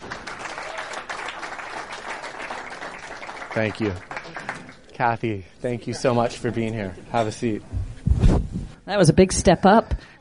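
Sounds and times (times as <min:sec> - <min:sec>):
audience applause welcoming the WNBA commissioner to the stage: 0:00.0 - 0:04.9
speech: 0:03.6 - 0:04.1, 0:05.0 - 0:07.8, 0:08.9 - 0:09.9.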